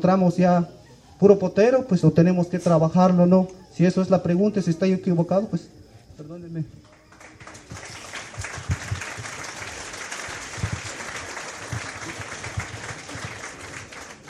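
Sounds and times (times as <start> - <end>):
speech: 0.0 - 6.9
audience applause: 6.9 - 14.2.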